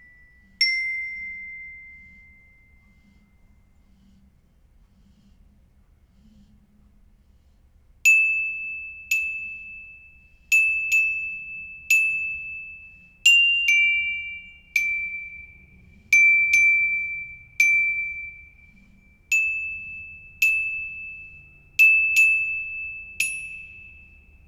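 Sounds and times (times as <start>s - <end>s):
glockenspiel: 0.0s - 3.0s, 8.1s - 24.4s.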